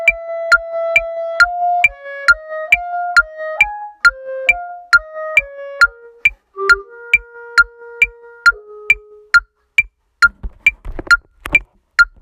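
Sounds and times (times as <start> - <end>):
clarinet: 0.0 - 9.7.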